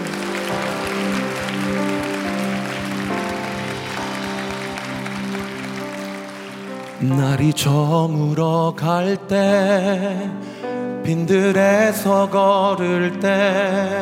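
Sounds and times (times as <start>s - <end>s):
audience clapping: 0.0s - 8.3s
sustained organ or keyboard chords: 0.0s - 13.9s
speech: 7.0s - 13.9s.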